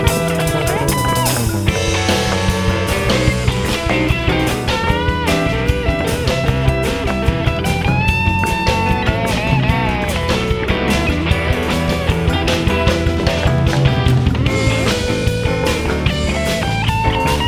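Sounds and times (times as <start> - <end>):
electric guitar playing: 0.0 - 17.4.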